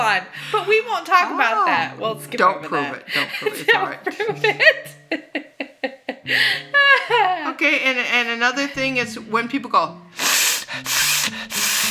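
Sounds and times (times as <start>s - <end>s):
speech: 0.0s - 5.2s, 7.6s - 11.0s
laughter: 3.0s - 7.4s
sniffing into a microphone: 10.2s - 11.8s.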